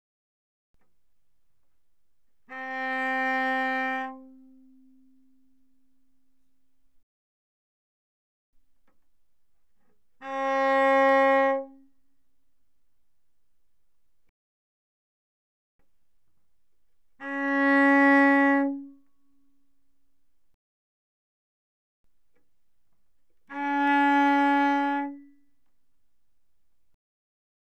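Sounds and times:
cello bowed arco mezzo forte on the G string: 0:01.7 - 0:06.8, 0:08.9 - 0:13.9, 0:15.8 - 0:19.1, 0:23.3 - 0:25.6.

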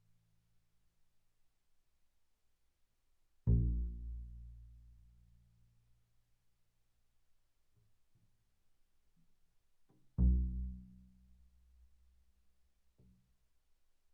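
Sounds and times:
double bass pizzicato on the E string: 0:03.5 - 0:04.8, 0:10.2 - 0:11.1.

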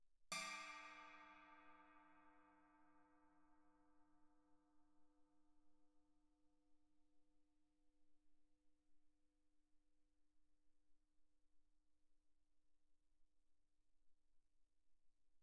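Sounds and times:
suspended cymbals struck with Chinese stick: 0:00.3 - 0:03.7.

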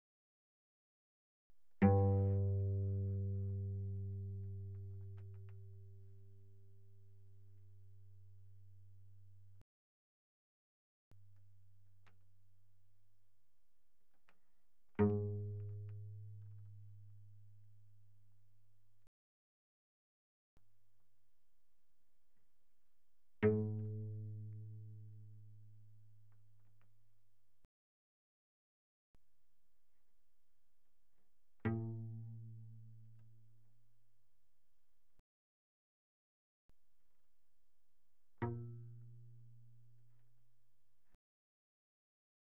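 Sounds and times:
cello pizzicato mezzo forte on the G string: 0:01.8 - 0:09.6, 0:14.9 - 0:17.6, 0:23.4 - 0:25.4, 0:38.4 - 0:40.1.

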